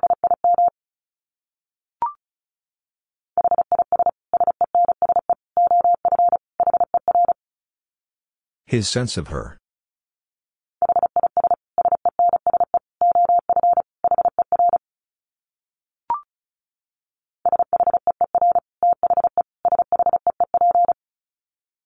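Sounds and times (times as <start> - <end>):
fast Morse code beeps at about 35 words per minute: 0.0 - 0.7, 3.4 - 7.4, 10.8 - 14.8, 17.5 - 21.0
speech: 8.7 - 9.6.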